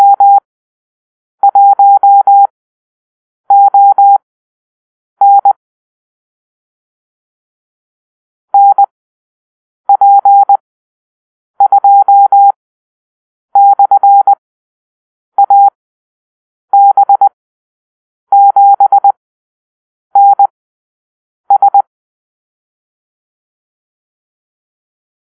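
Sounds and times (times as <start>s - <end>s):
morse code call-sign beeps: 0.0s - 0.4s, 1.4s - 2.5s, 3.5s - 4.2s, 5.2s - 5.6s, 8.6s - 8.9s, 9.9s - 10.6s, 11.6s - 12.6s, 13.6s - 14.4s, 15.4s - 15.7s, 16.8s - 17.4s, 18.3s - 19.2s, 20.2s - 20.5s, 21.5s - 21.9s.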